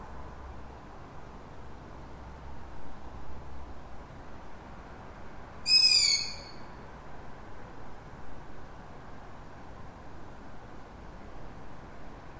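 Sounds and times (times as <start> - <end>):
soft rumbling hiss: 0.0 - 12.3
lone owl calling in the middle of the city: 5.7 - 6.7.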